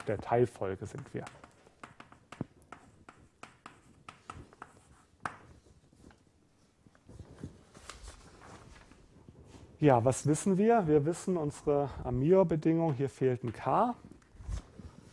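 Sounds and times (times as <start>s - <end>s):
speech: 0.0s - 1.5s, 9.8s - 14.1s
writing during a maths lecture: 0.1s - 6.2s.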